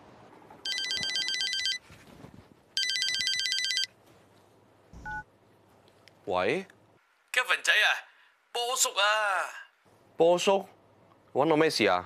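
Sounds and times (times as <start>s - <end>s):
faint noise: 0.0s - 12.0s
telephone ringing: 0.6s - 1.8s, 2.8s - 3.9s
speech: 6.3s - 6.8s, 8.6s - 9.6s, 10.2s - 10.8s, 11.4s - 12.0s.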